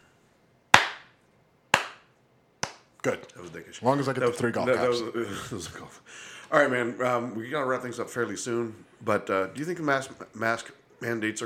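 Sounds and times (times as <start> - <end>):
hand clapping: 0.7 - 2.9
speech: 3.0 - 11.4
laughter: 4.2 - 6.1.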